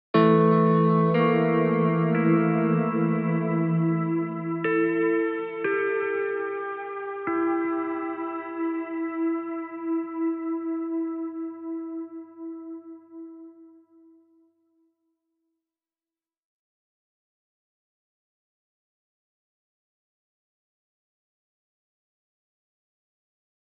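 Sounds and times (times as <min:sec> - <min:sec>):
guitar: 0:00.1 - 0:14.2.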